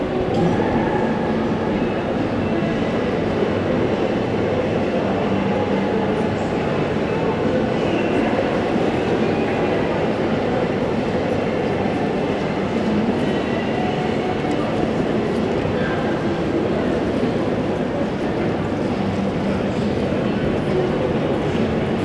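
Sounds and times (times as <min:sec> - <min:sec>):
very crowded big hall crowd murmur: 0:00.0 - 0:22.0.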